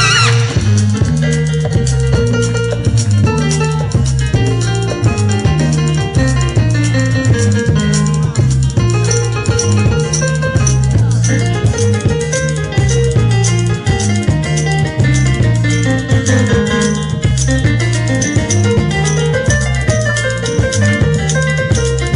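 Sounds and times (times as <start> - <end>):
solo piano: 0.1 - 22.1.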